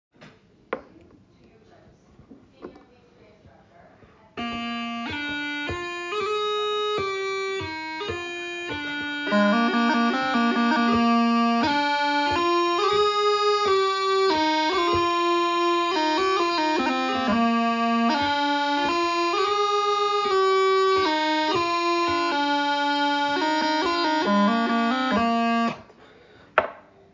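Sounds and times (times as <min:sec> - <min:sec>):
music medley ending: 0:04.4 - 0:25.9.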